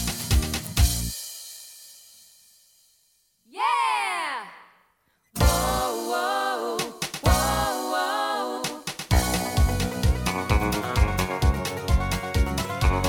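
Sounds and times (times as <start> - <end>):
square dance music rhythm track: 0.0 - 1.1, 5.4 - 13.0.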